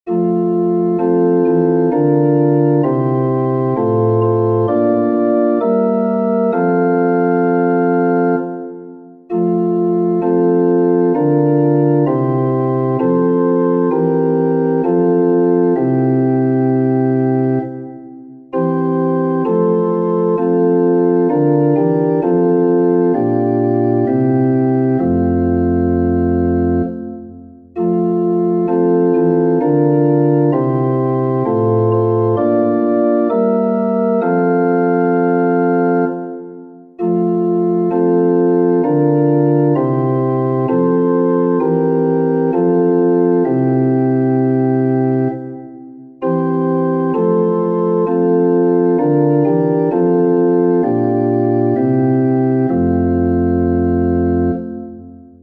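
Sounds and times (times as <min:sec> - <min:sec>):
pipe organ chorus: 0:00.1 - 0:55.4.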